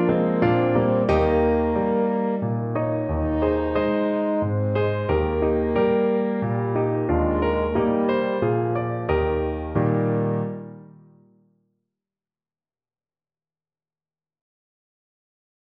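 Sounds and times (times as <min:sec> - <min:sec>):
French horn: 0:00.0 - 0:10.6.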